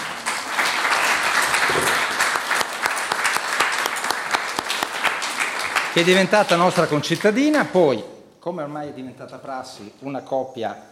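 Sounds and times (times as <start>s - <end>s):
audience applause: 0.0s - 6.7s
speech: 6.0s - 10.9s.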